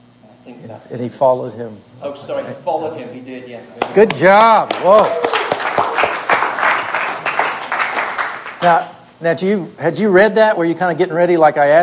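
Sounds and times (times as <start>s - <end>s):
speech: 0.4s - 5.2s, 8.6s - 11.8s
audience clapping: 3.8s - 8.8s.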